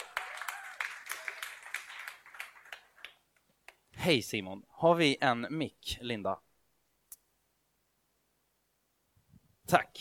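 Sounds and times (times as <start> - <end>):
audience applause: 0.0 - 3.3
speech: 4.0 - 6.5, 9.7 - 9.9.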